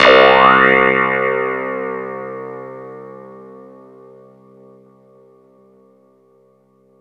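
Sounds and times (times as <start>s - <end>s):
clavinet: 0.0s - 3.5s.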